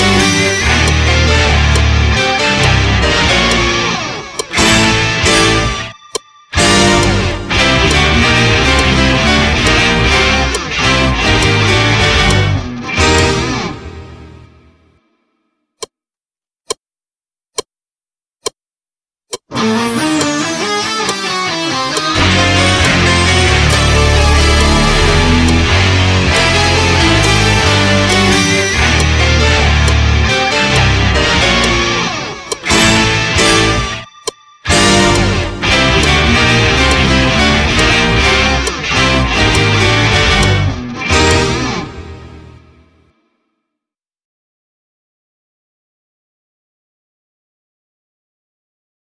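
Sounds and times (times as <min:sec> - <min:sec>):
slow music loop without drums: 0:00.0 - 0:14.5, 0:19.4 - 0:42.8.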